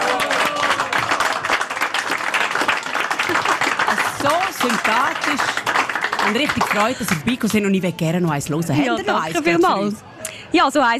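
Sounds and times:
audience applause: 0.0s - 7.6s
speech: 4.2s - 5.6s, 6.2s - 10.9s.

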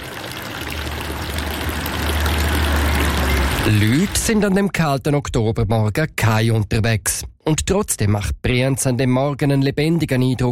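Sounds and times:
village fountain water splashing: 0.0s - 4.4s
speech: 3.7s - 10.5s.

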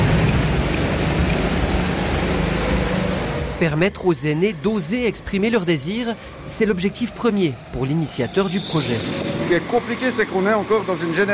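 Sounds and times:
go-kart engine driving around a karting track at Payerne: 0.0s - 11.3s
speech: 3.6s - 11.3s.

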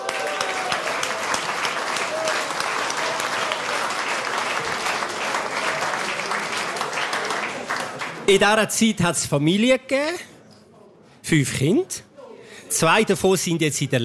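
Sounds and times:
crowd applauding: 0.0s - 8.5s
speech: 8.3s - 10.3s, 11.2s - 12.1s, 12.7s - 14.0s.

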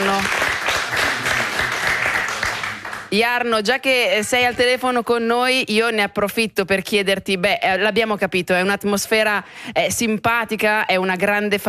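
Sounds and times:
radio show audience applause: 0.0s - 3.1s
speech: 3.1s - 11.6s.

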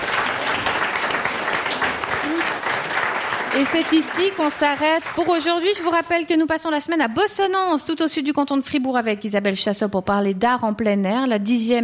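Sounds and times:
applause: 0.0s - 6.1s
speech: 3.6s - 11.8s.

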